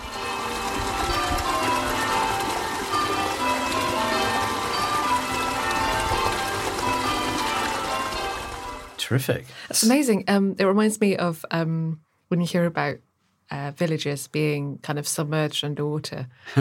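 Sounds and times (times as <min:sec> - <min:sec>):
church bells ringing: 0:00.0 - 0:09.0
village stream flowing: 0:00.0 - 0:09.0
speech: 0:09.1 - 0:16.5.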